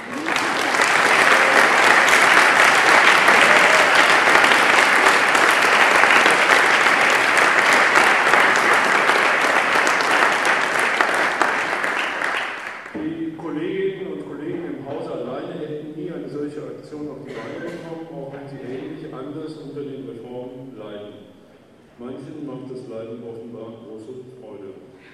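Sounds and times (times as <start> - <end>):
conference audience applause: 0.0 - 13.0.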